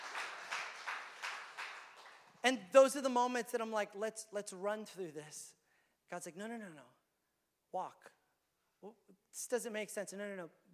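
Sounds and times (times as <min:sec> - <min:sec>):
audience clapping: 0:00.0 - 0:02.5
speech: 0:02.4 - 0:07.0, 0:07.7 - 0:08.2, 0:08.8 - 0:10.7.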